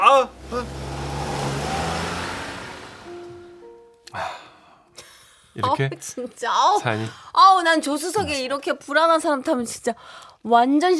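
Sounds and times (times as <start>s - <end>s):
car pulling away and accelerating: 0.0s - 3.9s
speech: 5.6s - 10.9s.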